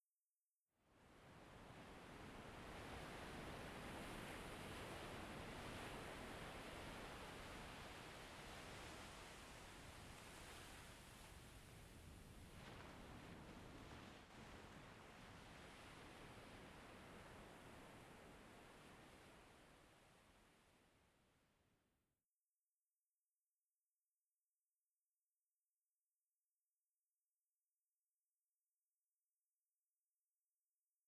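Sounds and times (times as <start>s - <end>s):
waves: 1.4s - 20.7s.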